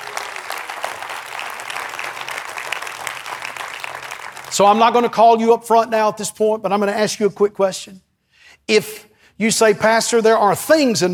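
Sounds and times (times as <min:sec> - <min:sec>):
audience clapping hands: 0:00.0 - 0:04.8
speech: 0:04.6 - 0:08.1, 0:08.7 - 0:11.1.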